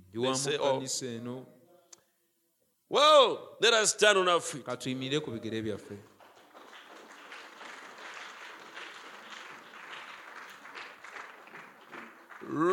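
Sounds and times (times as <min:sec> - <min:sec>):
speech: 0:00.1 - 0:01.6, 0:02.9 - 0:06.1, 0:12.5 - 0:12.7
crowd clapping: 0:06.0 - 0:12.7.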